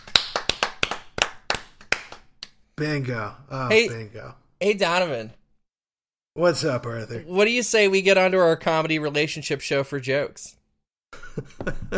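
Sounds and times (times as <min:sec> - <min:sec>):
round of applause: 0:00.0 - 0:02.3
speech: 0:02.8 - 0:05.4, 0:06.4 - 0:10.6, 0:11.4 - 0:11.9.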